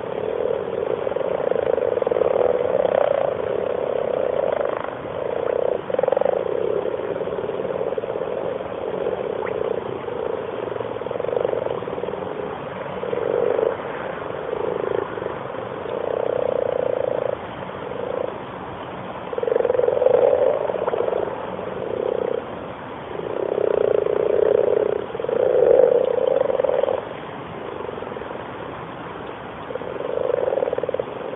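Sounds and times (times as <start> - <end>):
frogs in a pond: 0.0 - 31.3.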